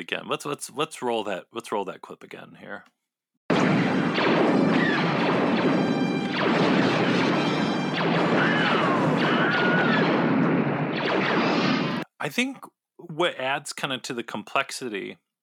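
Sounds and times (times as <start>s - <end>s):
speech: 0.0s - 3.0s, 8.0s - 10.3s, 11.1s - 15.2s
crashing and sweeping laser-blast effects: 3.5s - 12.0s
Wilhelm scream: 5.8s - 10.2s.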